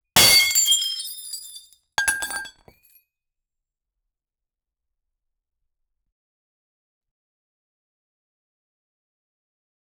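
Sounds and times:
huge amount of glass breaking: 0:00.2 - 0:02.7.

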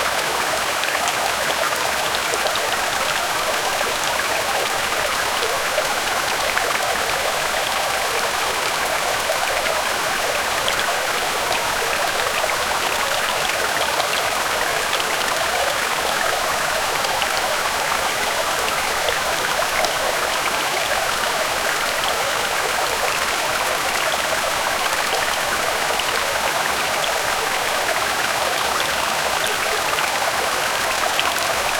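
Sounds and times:
water flowing in river stream: 0:00.0 - 0:31.7.

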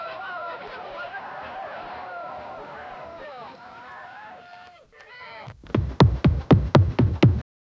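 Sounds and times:
chaotic village chase music: 0:05.6 - 0:07.4.

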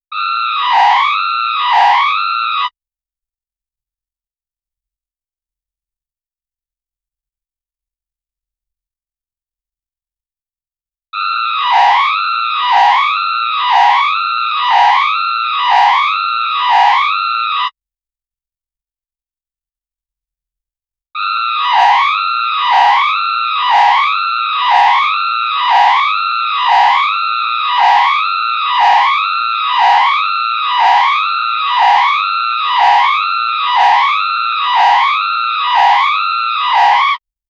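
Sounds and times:
discordant emergency alert system tone: 0:00.1 - 0:02.7, 0:11.2 - 0:17.7, 0:21.2 - 0:37.2.

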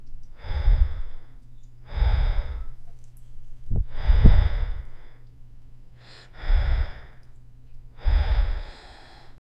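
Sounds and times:
farmer gasping and panting in fear: 0:00.4 - 0:01.3, 0:01.9 - 0:02.8, 0:03.8 - 0:05.3, 0:06.0 - 0:07.3, 0:08.0 - 0:09.4.

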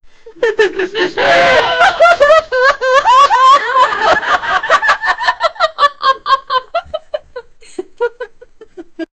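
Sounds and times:
laughter: 0:00.4 - 0:09.1
late night show audience reacting: 0:00.9 - 0:06.3.

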